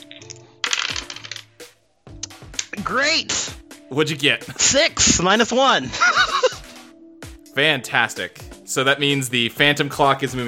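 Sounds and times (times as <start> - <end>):
dice being rolled: 0.2 - 1.7
speech: 2.8 - 6.3, 7.6 - 10.4.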